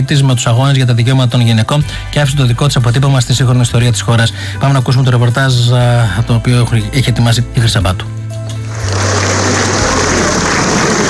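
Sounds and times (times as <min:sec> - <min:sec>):
speech: 0:00.0 - 0:08.2
warm prolonged applause from a large crowd at a funeral: 0:08.7 - 0:11.0.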